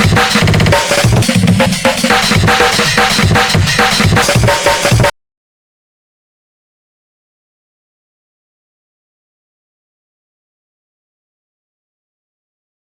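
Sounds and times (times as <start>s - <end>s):
drums in fan-made music: 0.0s - 5.1s.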